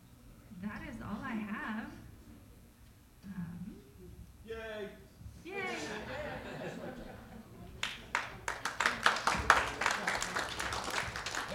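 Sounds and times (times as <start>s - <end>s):
low murmur: 0.0s - 11.5s
laughter: 5.6s - 7.7s
audience clapping: 7.7s - 11.5s.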